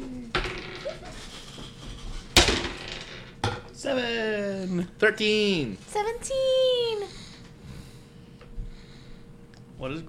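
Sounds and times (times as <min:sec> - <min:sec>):
dice rolling on a hard tabletop: 0:00.3 - 0:03.7
speech: 0:03.8 - 0:07.1, 0:09.8 - 0:10.0.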